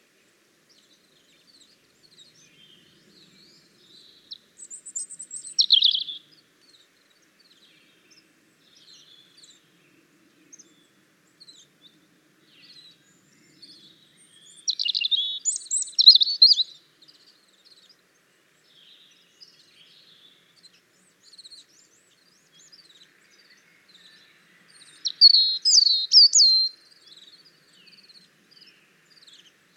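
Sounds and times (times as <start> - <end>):
European robin song: 0.7 - 29.7.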